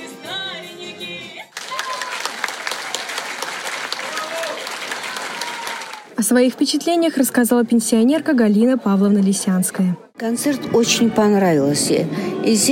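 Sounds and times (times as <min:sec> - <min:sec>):
audience applauding at concert: 0:01.5 - 0:06.2
speech: 0:06.2 - 0:12.6.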